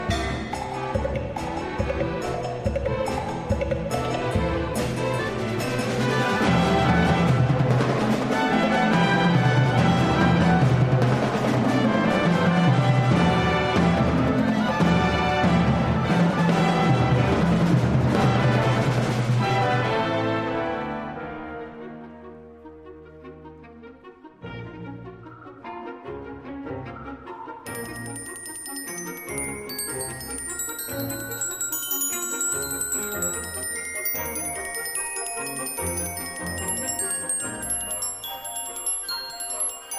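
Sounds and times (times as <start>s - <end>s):
solo percussion: 0.0s - 19.5s, 27.7s - 39.9s
orchestra: 0.0s - 39.9s.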